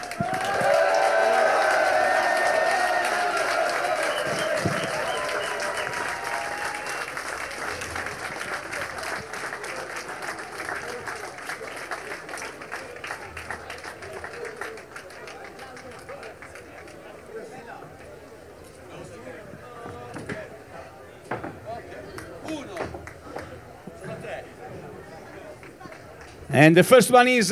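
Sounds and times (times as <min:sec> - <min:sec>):
cheers and whoops: 0:00.0 - 0:08.9
crowd applauding award winners: 0:00.0 - 0:19.4, 0:22.0 - 0:26.8
speech: 0:26.6 - 0:27.5.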